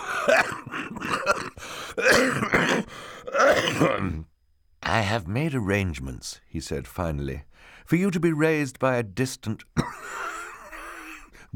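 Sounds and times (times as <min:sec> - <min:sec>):
brief fit of coughing: 0:00.0 - 0:04.3, 0:09.8 - 0:11.5
speech: 0:03.8 - 0:04.3, 0:04.9 - 0:10.2.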